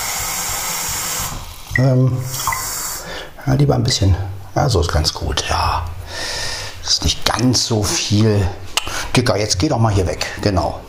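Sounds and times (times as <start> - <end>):
water poured into a thermos mug: 0.0 - 3.0
speech: 1.8 - 2.5, 3.4 - 5.9, 7.0 - 8.6, 9.2 - 10.8.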